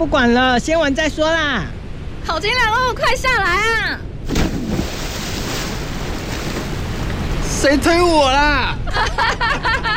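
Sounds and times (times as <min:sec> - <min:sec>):
speech: 0:00.0 - 0:04.4, 0:07.6 - 0:09.9
water splashing at a deep summer diving spot: 0:04.2 - 0:07.9
laughter: 0:08.8 - 0:09.9.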